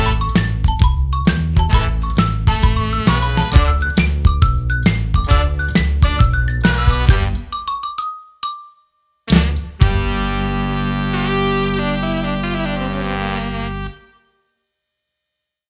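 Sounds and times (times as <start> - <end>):
comical xylophone band: 0.0 - 13.7.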